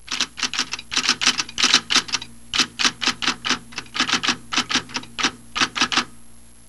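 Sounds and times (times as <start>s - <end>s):
typewriter: 0.0s - 6.2s.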